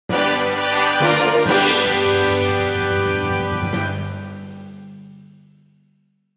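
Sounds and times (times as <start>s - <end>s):
fanfare: 0.1s - 5.0s.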